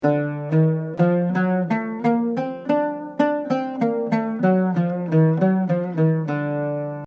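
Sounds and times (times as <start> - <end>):
Arabic maqam music: 0.0 - 7.0.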